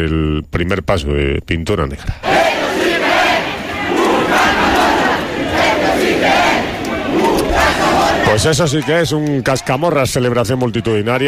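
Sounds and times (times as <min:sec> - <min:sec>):
speech: 0:00.0 - 0:02.8, 0:08.3 - 0:11.2
huge festival crowd cheering and chanting: 0:02.2 - 0:11.2.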